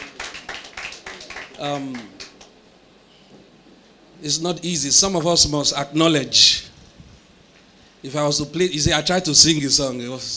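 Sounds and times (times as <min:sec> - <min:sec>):
audience applause: 0:00.0 - 0:02.6
speech: 0:01.6 - 0:02.2, 0:04.2 - 0:06.7, 0:08.0 - 0:10.3.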